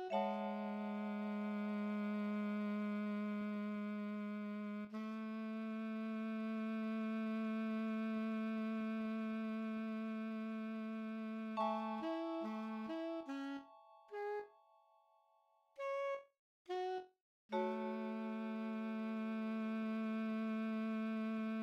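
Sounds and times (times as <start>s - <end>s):
MIDI soprano saxophone: 0.0s - 14.5s, 15.8s - 21.6s.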